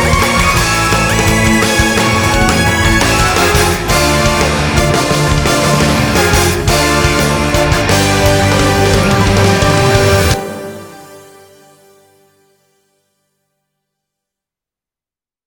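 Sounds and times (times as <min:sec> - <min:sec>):
battle background music: 0:00.0 - 0:11.2.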